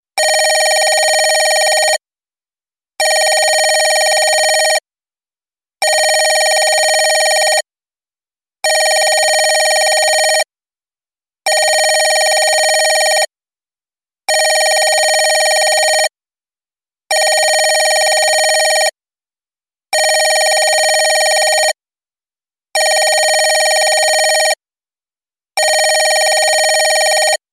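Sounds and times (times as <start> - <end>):
old phone ringing: 0.2 - 1.8, 3.1 - 4.8, 5.8 - 7.5, 8.7 - 10.2, 11.5 - 13.2, 14.3 - 16.1, 17.1 - 18.8, 20.0 - 21.6, 22.8 - 24.4, 25.6 - 27.4.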